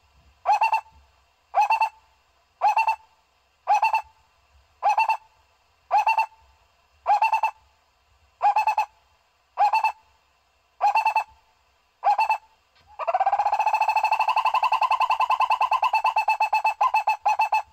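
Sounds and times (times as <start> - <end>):
owl hooting: 0.4 - 2.0, 2.6 - 4.2, 4.8 - 5.3, 5.9 - 7.6, 8.4 - 9.0, 9.6 - 10.1, 10.8 - 11.4, 12.0 - 17.7.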